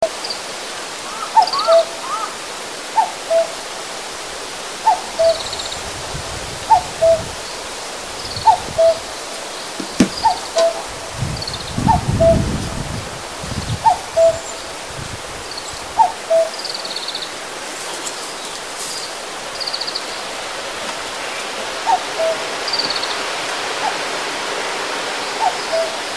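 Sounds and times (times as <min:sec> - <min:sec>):
common cuckoo giving cu-coo calls: 0:01.0 - 0:03.8, 0:04.8 - 0:06.0, 0:06.6 - 0:12.8, 0:13.7 - 0:14.9, 0:15.5 - 0:24.3, 0:25.2 - 0:26.1.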